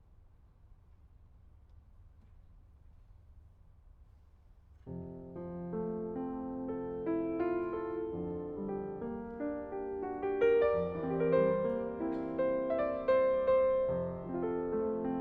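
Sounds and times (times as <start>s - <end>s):
piano: 4.7s - 15.1s.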